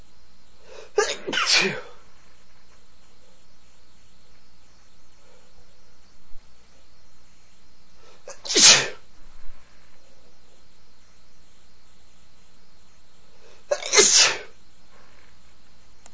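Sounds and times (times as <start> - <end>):
man sneezing: 0.7 - 2.0, 8.3 - 9.0, 13.7 - 14.5.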